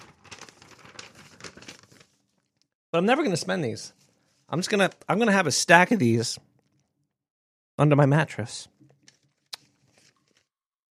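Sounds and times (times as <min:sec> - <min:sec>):
crinkling paper banknotes being handled: 0:00.0 - 0:02.8, 0:03.4 - 0:05.4, 0:08.8 - 0:10.5
speech: 0:02.9 - 0:06.5, 0:07.8 - 0:08.7.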